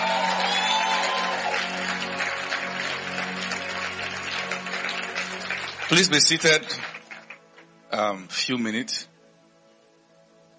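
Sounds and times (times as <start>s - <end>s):
faint cheers and voices: 0.0s - 2.0s
audience clapping: 0.0s - 7.7s
speech: 5.9s - 6.9s, 8.0s - 9.1s.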